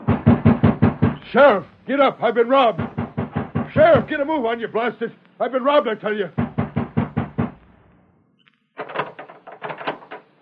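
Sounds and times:
fist pounding on the sheriff's door: 0.0s - 1.6s, 2.8s - 4.3s, 6.4s - 7.6s
speech: 1.3s - 3.0s, 3.7s - 6.4s.

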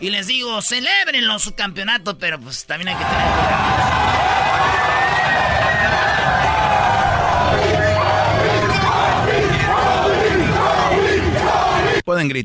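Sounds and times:
speech: 0.0s - 4.7s, 12.1s - 12.4s
street crowd of fans chanting: 3.0s - 12.0s.

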